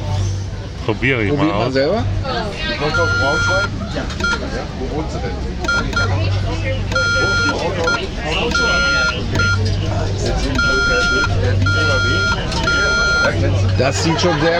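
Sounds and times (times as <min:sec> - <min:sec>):
speech: 0:00.9 - 0:14.5
Morse code tones keyed by hand: 0:02.8 - 0:04.6, 0:05.6 - 0:13.6
laughter: 0:10.2 - 0:14.5.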